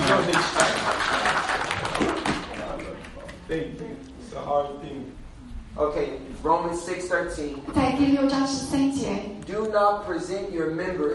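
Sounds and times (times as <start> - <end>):
audience applauding: 0.0 - 3.4
speech: 0.1 - 0.8, 3.5 - 5.2, 5.8 - 11.1.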